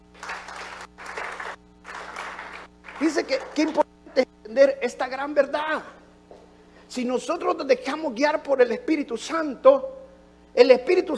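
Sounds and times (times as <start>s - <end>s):
audience applause: 0.0s - 3.8s
speech: 3.0s - 6.0s, 6.9s - 10.0s, 10.6s - 11.1s.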